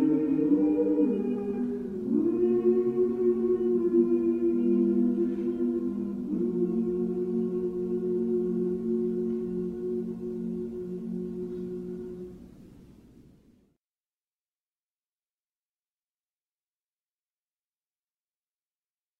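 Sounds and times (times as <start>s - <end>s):
South African lullaby: 0.0s - 13.3s.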